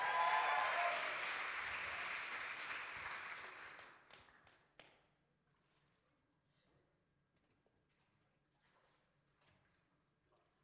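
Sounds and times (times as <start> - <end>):
audience applauding and cheering: 0.0 - 4.1.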